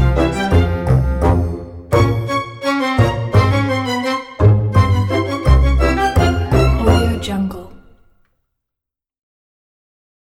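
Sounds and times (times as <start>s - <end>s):
playful music: 0.0s - 8.2s.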